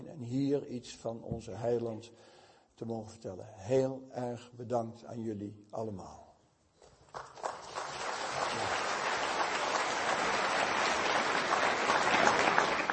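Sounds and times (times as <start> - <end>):
speech: 0.2 - 6.2
audience applause after a religious talk: 7.1 - 12.9.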